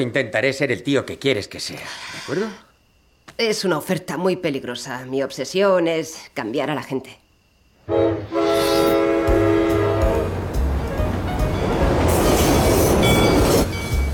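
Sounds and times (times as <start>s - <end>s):
speech: 0.0s - 2.7s, 3.3s - 7.2s
train horn at a railway station: 7.8s - 13.2s
train wheels and carriages rolling at a railway station: 8.1s - 14.1s.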